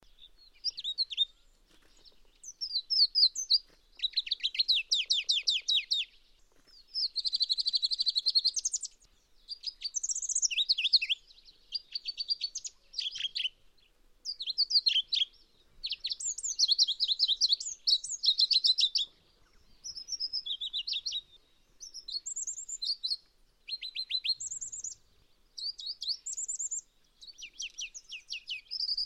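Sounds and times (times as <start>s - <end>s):
Pallas's leaf warbler song with rapid repeated notes and trills: 0.0s - 29.0s.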